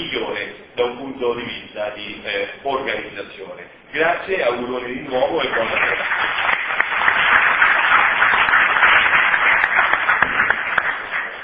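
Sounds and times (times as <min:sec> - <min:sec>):
speech: 0:00.8 - 0:06.6
large crowd applauding: 0:05.4 - 0:11.4.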